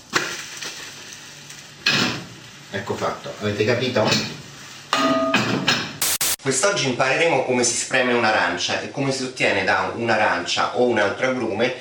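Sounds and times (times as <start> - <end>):
frying pan sizzling as an omelette is flipped: 0.0 - 6.4
speech: 2.7 - 4.4, 6.4 - 11.7.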